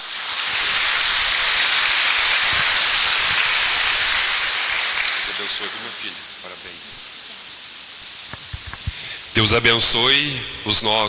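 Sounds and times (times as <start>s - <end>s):
round of applause: 0.0s - 10.8s
speech: 9.4s - 11.0s.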